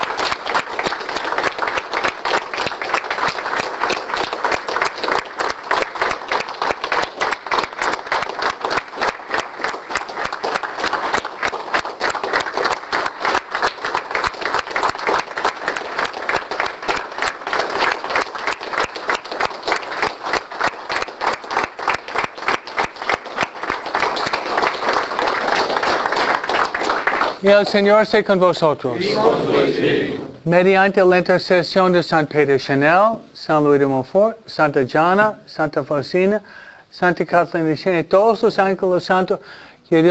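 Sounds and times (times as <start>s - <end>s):
audience applauding: 0.0s - 28.3s
speech: 27.5s - 40.0s.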